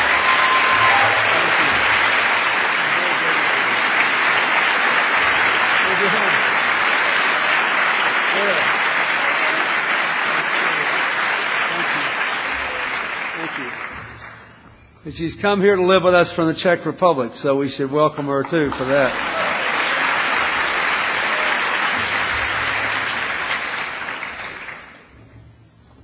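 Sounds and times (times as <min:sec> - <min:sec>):
audience applause for an honoured woman: 0:00.0 - 0:14.5, 0:18.3 - 0:25.2
laughter: 0:00.8 - 0:13.9, 0:18.8 - 0:22.5
speech: 0:15.1 - 0:19.4.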